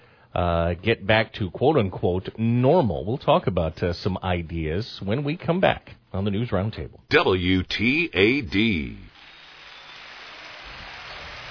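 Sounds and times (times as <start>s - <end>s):
speech: 0.4s - 9.1s
applause: 9.6s - 11.4s.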